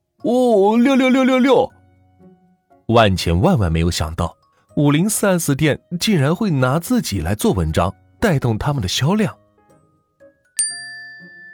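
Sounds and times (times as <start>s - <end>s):
speech: 0.2s - 1.7s, 2.9s - 9.4s
phone notification ding for a new friend request: 10.6s - 11.5s.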